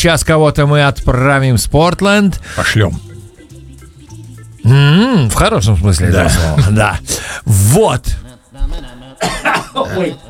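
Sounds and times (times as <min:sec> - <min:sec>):
speech: 0:00.0 - 0:03.1, 0:04.6 - 0:10.2
person coughing after choking: 0:08.6 - 0:10.2.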